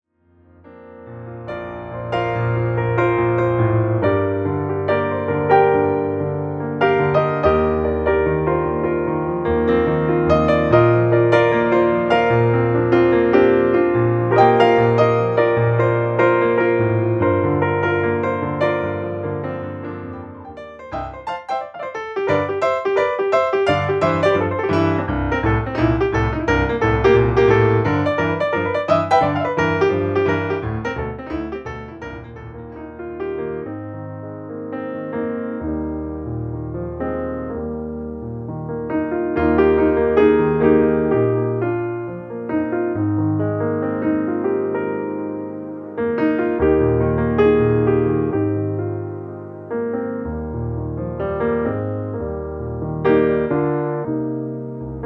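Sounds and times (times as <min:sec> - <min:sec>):
piano: 0:00.0 - 0:55.0.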